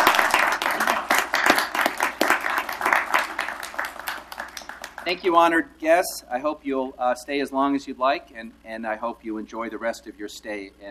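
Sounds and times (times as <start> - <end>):
audience applause: 0.0 - 5.2
speech: 5.1 - 10.8.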